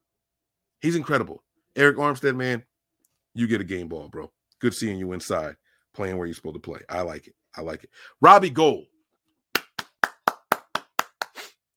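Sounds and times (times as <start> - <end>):
speech: 0.8 - 2.7, 3.4 - 8.9
single pair of hands clapping in applause: 9.5 - 11.6.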